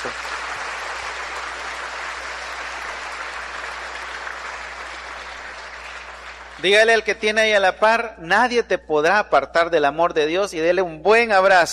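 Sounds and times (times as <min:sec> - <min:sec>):
audience applauding: 0:00.0 - 0:06.9
speech: 0:06.6 - 0:11.7.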